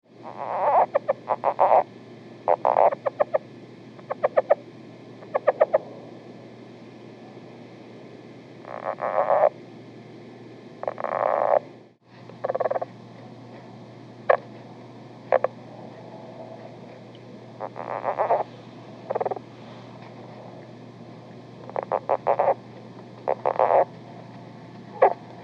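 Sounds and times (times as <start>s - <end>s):
low hum: 0.0s - 25.4s
lowland leopard frog calls: 0.2s - 5.9s, 8.6s - 9.6s, 10.8s - 11.7s, 12.4s - 12.9s, 14.2s - 14.5s, 15.3s - 15.7s, 17.6s - 19.5s, 21.6s - 24.0s, 24.9s - 25.4s.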